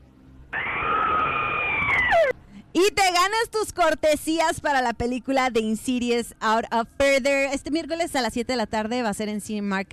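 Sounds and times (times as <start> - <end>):
short scream of fright: 0.6 - 2.4
speech: 2.8 - 9.9.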